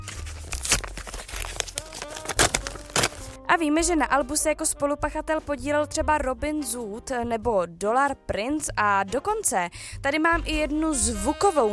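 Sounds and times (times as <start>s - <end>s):
paper envelope being opened: 0.0s - 3.4s
speech: 3.5s - 11.7s.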